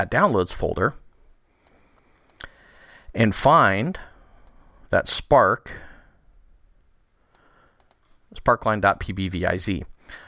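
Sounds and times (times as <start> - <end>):
speech: 0.0 - 1.0, 3.1 - 4.1, 4.9 - 5.9, 8.3 - 10.2
computer mouse clicks while importing a custom Power BI visual file: 7.3 - 8.2.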